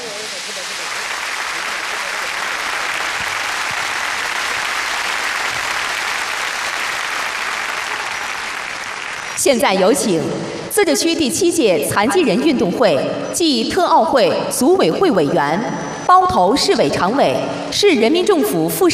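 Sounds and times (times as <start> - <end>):
audience applause welcoming guests: 0.0 - 9.4
speech: 9.4 - 18.9.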